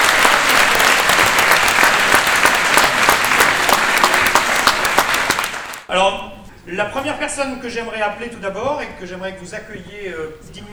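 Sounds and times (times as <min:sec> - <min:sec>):
audience applause: 0:00.0 - 0:05.9
speech: 0:06.0 - 0:10.7.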